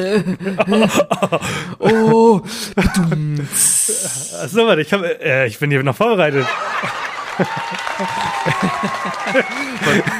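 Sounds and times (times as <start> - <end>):
laughter: 0.0 - 3.1, 6.2 - 10.1
speech: 0.0 - 10.1
applause for a joke: 6.5 - 10.1.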